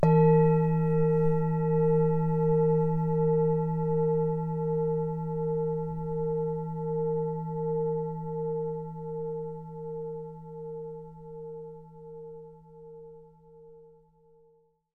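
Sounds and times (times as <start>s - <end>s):
Tibetan singing bowl for meditation: 0.0s - 14.8s.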